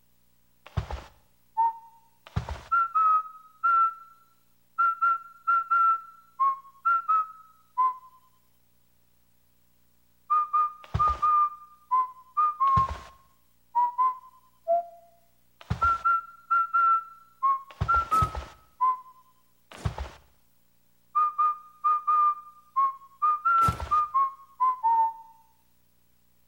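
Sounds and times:
person whistling: 0:01.6 - 0:08.4, 0:10.3 - 0:13.2, 0:13.8 - 0:20.0, 0:21.2 - 0:25.6.

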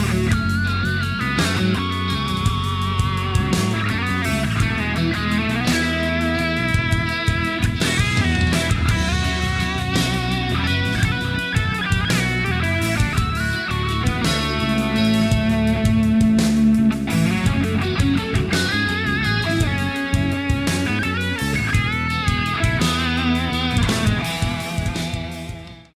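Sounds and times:
rock guitar solo: 0:00.0 - 0:25.9.

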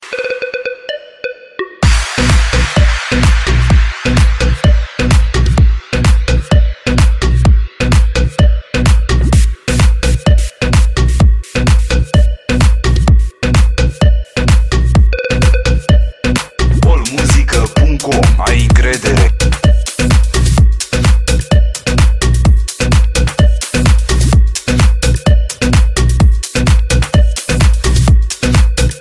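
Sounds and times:
beat: 0:00.0 - 0:29.0.

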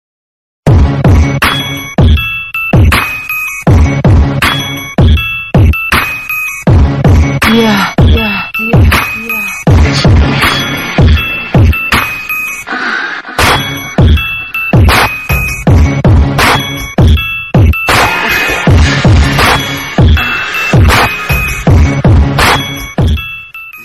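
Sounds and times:
heavy bass music: 0:00.7 - 0:23.4.

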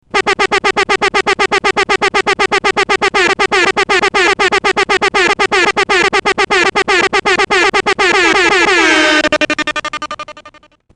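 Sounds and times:
horn mix: 0:00.1 - 0:10.5.

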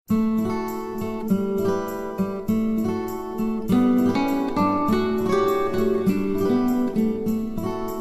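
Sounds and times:
mild melody: 0:00.1 - 0:07.9.

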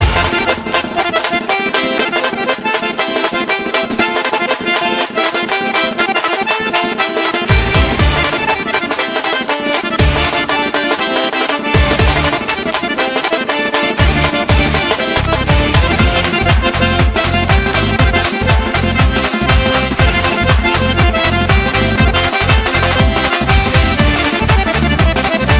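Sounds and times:
Caucasian Lezginka dance music: 0:00.0 - 0:25.5.

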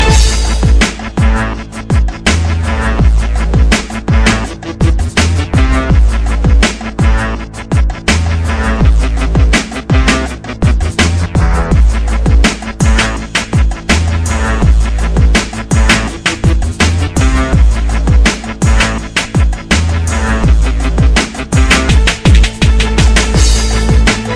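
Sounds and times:
shaker beat: 0:00.0 - 0:24.3.

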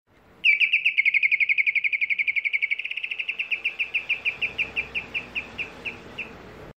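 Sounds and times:
canary: 0:00.5 - 0:06.4.

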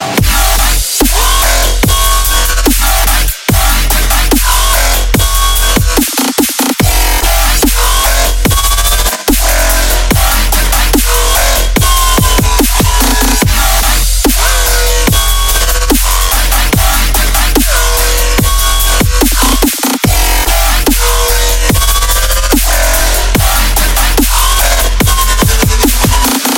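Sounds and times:
dubstep music: 0:00.0 - 0:26.5.

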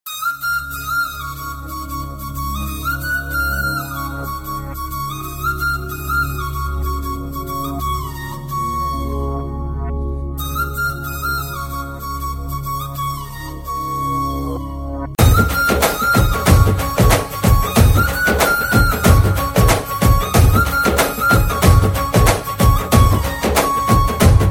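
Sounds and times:
folk flute playing: 0:00.1 - 0:24.4.

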